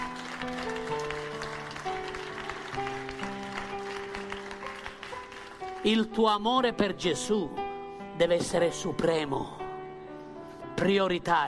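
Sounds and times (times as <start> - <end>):
audience applause: 0.0 - 5.8
sustained keyboard chords: 0.0 - 10.8
speech: 5.8 - 7.6, 8.2 - 9.6, 10.8 - 11.4.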